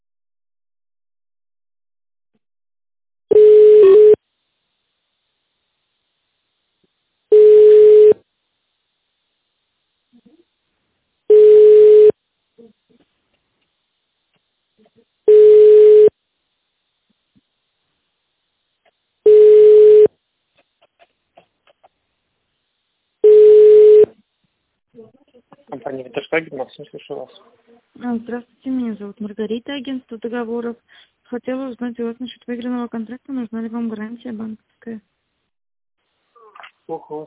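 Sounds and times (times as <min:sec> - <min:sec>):
telephone ringback tone: 0:03.3 - 0:04.2, 0:07.3 - 0:08.2, 0:11.3 - 0:12.1, 0:15.3 - 0:16.1, 0:19.3 - 0:20.1, 0:23.2 - 0:24.1
speech: 0:25.9 - 0:35.1, 0:36.9 - 0:37.2.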